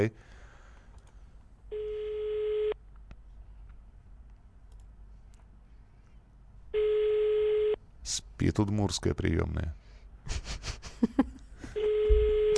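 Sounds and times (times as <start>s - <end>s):
speech: 0.0s - 0.3s, 8.1s - 11.3s
ringback tones on an outgoing phone call: 1.7s - 2.8s, 6.8s - 7.8s, 11.8s - 12.5s.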